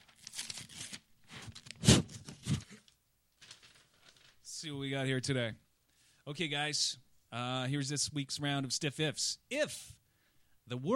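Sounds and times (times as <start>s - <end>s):
envelope paper tearing and crinkling: 0.0s - 4.4s
speech: 4.6s - 5.6s, 6.3s - 10.0s, 10.7s - 10.9s.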